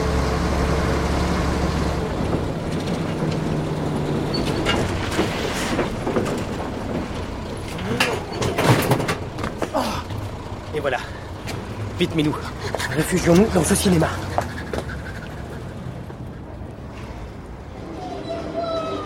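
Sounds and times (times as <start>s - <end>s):
rattling road noise of slowing truck: 0.0s - 19.0s
truck engine rumbling: 0.0s - 19.0s
speech: 12.0s - 14.3s.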